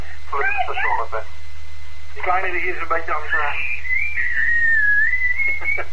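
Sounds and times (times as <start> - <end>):
low electrical hum: 0.0 - 5.9
speech: 0.3 - 1.4, 2.2 - 3.9, 5.6 - 5.9
high-pitched whistling tone over a radio link: 3.2 - 5.9.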